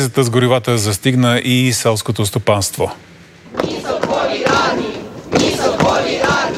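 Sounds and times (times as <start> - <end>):
speech: 0.0 - 3.9
large crowd of protesters shouting slogans in unison: 3.5 - 6.5.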